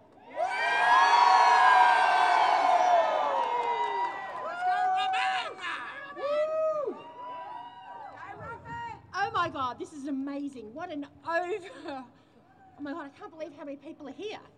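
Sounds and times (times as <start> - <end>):
rally crowd roaring and cheering: 0.2 - 8.3
scattered whoops and individual shouts: 0.2 - 9.0
speech: 9.8 - 12.2, 12.8 - 14.5.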